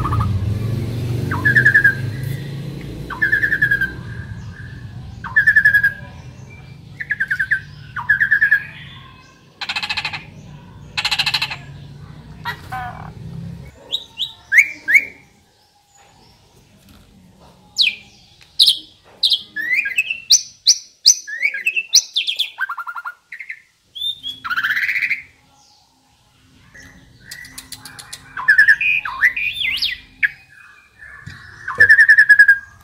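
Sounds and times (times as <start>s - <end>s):
Asian pied starling singing: 0.0s - 16.8s, 17.6s - 32.8s.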